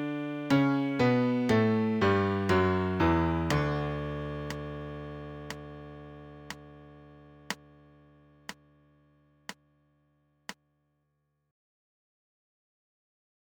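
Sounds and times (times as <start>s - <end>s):
MIDI D major scale: 0.0s - 6.6s.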